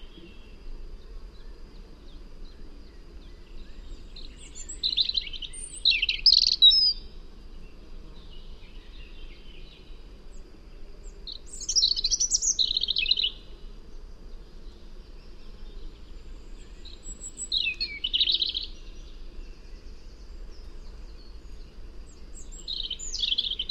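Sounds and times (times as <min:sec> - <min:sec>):
European robin singing: 0:03.3 - 0:07.1, 0:11.3 - 0:13.5, 0:16.6 - 0:18.9, 0:22.3 - 0:23.6.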